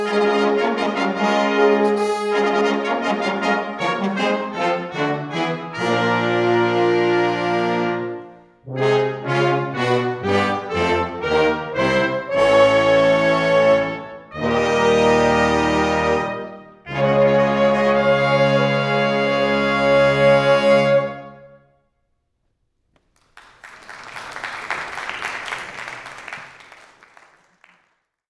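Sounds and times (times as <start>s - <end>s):
fanfare: 0.0s - 21.4s.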